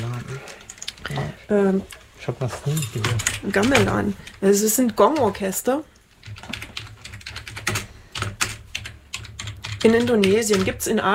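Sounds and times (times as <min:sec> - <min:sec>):
speech: 0:01.5 - 0:06.4, 0:09.8 - 0:11.1
typing a search on a computer keyboard: 0:03.0 - 0:05.6, 0:06.2 - 0:10.9.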